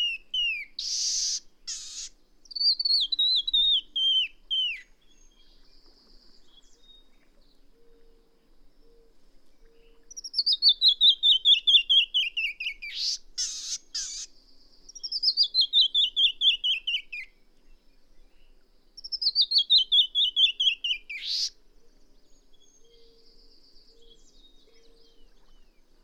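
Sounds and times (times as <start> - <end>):
songbird singing descending trills: 0.0 - 5.5, 9.7 - 14.3, 14.9 - 17.3, 19.0 - 21.6.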